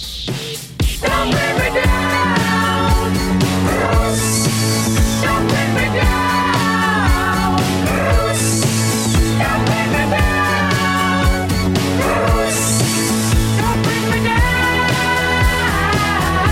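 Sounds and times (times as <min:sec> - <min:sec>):
70s style drum machine beat: 0:00.0 - 0:16.5.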